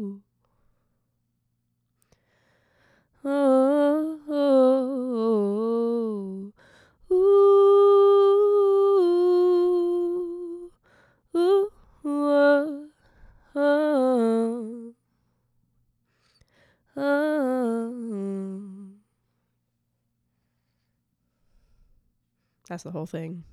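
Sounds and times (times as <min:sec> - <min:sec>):
vocals: 0:00.0 - 0:00.6, 0:03.0 - 0:15.0, 0:16.4 - 0:19.2, 0:22.7 - 0:23.5.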